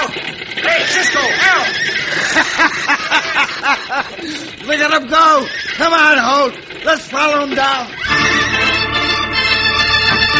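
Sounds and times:
horses whinnying as bandits pelt them with rocks: 0:00.0 - 0:10.3
laughter: 0:00.6 - 0:04.6
speech: 0:03.8 - 0:08.4.

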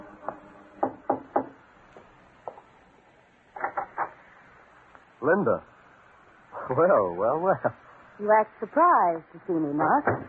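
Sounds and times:
knocking on a studio door: 0:00.8 - 0:01.6
speech: 0:05.2 - 0:05.7, 0:06.7 - 0:10.2.

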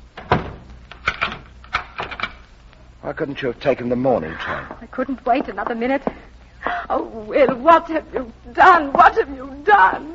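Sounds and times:
door pushed shut with wooden knocks and clunks: 0:00.2 - 0:02.4
speech: 0:03.1 - 0:06.2, 0:06.9 - 0:10.1.

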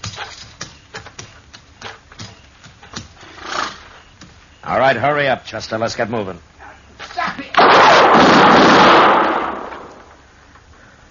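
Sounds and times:
speech: 0:04.7 - 0:06.5
gunshot in a radio western drama: 0:07.6 - 0:10.1.

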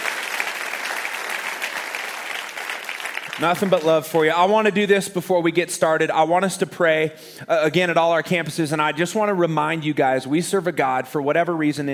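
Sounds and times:
church congregation clapping: 0:00.0 - 0:04.8
speech: 0:03.4 - 0:11.9.

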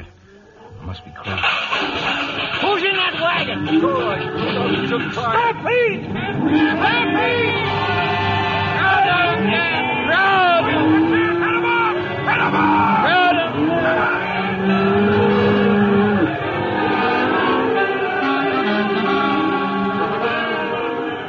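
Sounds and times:
speech: 0:00.9 - 0:08.0
cattle bellowing: 0:02.9 - 0:21.2.

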